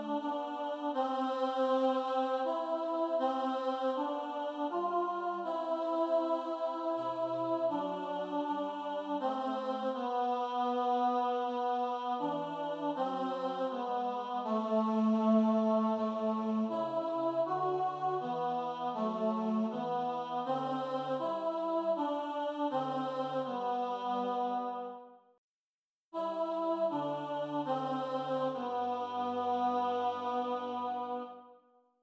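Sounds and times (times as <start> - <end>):
choir singing tenor over bass at tempo: 0.0 - 25.1, 26.2 - 31.6.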